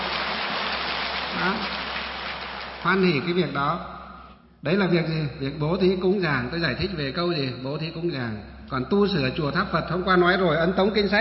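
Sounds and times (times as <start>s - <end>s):
audience applause: 0.0s - 3.0s
speech: 1.4s - 1.8s, 2.8s - 4.0s, 4.6s - 11.1s.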